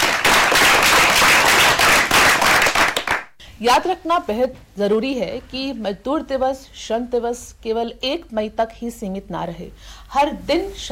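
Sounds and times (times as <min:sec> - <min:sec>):
loud applause: 0:00.0 - 0:03.3
speech: 0:03.6 - 0:10.9.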